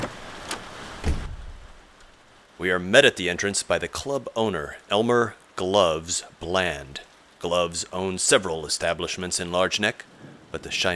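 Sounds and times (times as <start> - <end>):
rain falling outside: 0.0 - 10.9
speech: 2.6 - 10.9.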